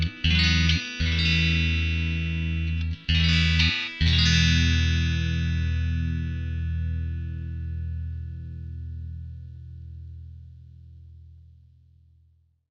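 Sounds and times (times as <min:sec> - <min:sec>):
clean musical bridge: 0:00.0 - 0:11.2.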